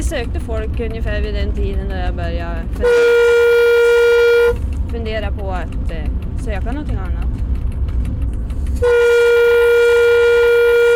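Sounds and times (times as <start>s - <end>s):
low train locomotive engine rumble: 0.0s - 10.9s
speech: 0.1s - 3.6s, 4.9s - 7.4s, 8.8s - 9.2s
train locomotive horn blast: 2.8s - 4.6s, 8.8s - 10.9s.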